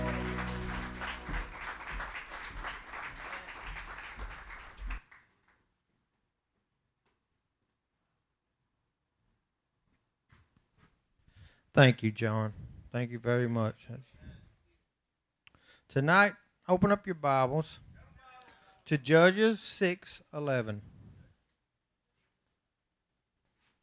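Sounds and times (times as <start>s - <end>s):
church congregation clapping hands in praise: 0.0s - 5.3s
speech: 11.8s - 14.2s, 15.9s - 17.9s, 18.9s - 20.9s.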